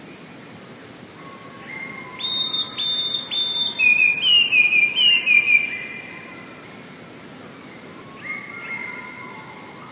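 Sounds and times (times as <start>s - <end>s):
Eurasian blue tit singing: 1.8s - 6.3s.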